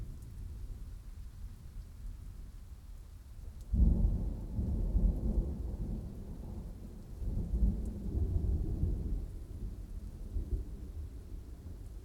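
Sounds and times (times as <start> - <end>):
dry extended thunderstorm: 3.7 - 12.0.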